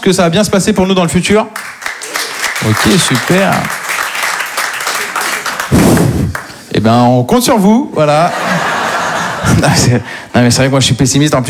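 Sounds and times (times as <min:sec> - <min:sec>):
speech: 0:00.0 - 0:01.9, 0:02.6 - 0:03.8, 0:06.7 - 0:08.7, 0:09.4 - 0:11.4
audience applause answering a question put to the room: 0:01.5 - 0:06.6
laughter: 0:02.0 - 0:06.1, 0:08.2 - 0:10.1.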